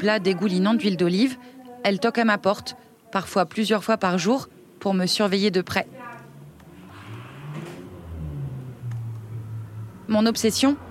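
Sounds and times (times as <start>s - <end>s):
speech: 0.0s - 6.1s, 10.1s - 10.8s
car engines revving and accelerating along a street: 6.3s - 10.8s.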